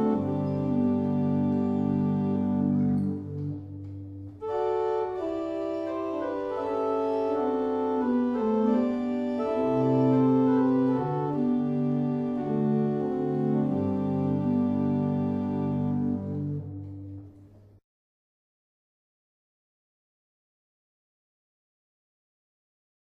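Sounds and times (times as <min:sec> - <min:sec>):
barrel organs playing a morning hymn: 0:00.0 - 0:17.1.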